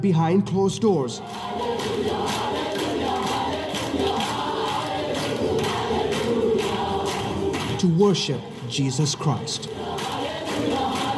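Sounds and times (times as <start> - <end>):
speech: 0.0 - 2.5, 7.8 - 10.0
audience singing rising chorus: 1.2 - 7.9, 8.9 - 11.1.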